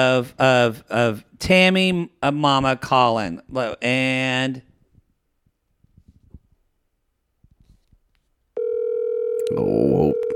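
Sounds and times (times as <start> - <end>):
speech: 0.0 - 4.7
telephone ringing tone on an outgoing call: 8.6 - 10.3.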